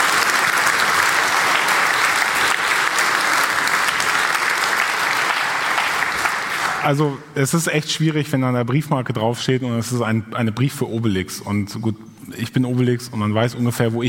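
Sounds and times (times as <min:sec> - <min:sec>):
audience applause: 0:00.0 - 0:07.0
speech: 0:06.8 - 0:14.0.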